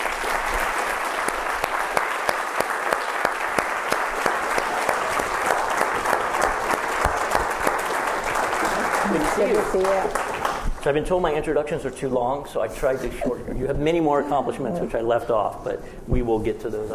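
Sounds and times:
audience applause welcoming a speaker at UC Santa Barbara: 0.0 - 10.7
speech: 9.4 - 16.9.

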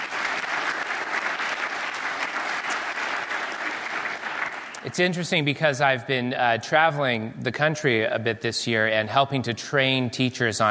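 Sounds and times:
crowd applauding: 0.0 - 5.0
speech: 4.8 - 10.7.

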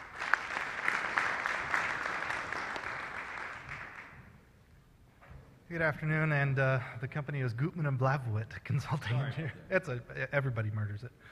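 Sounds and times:
audience applauding to welcome a speaker at a presentation: 0.0 - 4.4
speech: 5.7 - 11.3.

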